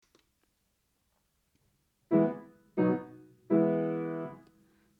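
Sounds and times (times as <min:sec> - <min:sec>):
low sol intervals: 0:02.1 - 0:04.5.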